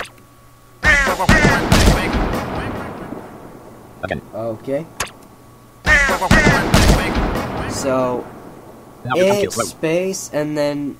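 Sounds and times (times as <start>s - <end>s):
video game gunshots: 0.8s - 9.8s
speech: 1.2s - 2.0s, 4.0s - 5.0s, 6.2s - 7.0s, 7.7s - 8.4s, 9.0s - 10.9s.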